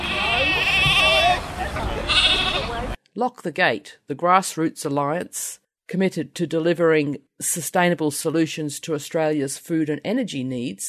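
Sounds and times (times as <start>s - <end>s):
lambs bleating at a farmers' rally outside the Korean embassy in Canberra: 0.0s - 1.4s, 2.1s - 2.8s
murmur: 0.0s - 3.0s
speech: 3.2s - 10.8s.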